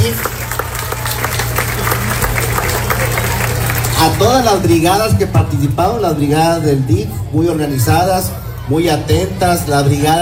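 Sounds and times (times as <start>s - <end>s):
audience applause: 0.0s - 4.8s
speech: 4.2s - 10.1s.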